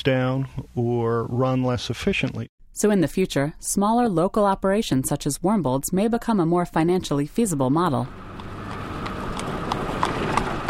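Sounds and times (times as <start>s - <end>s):
speech: 0.0s - 8.3s
Amish horse-drawn buggy hooves clip-clopping: 8.2s - 10.6s.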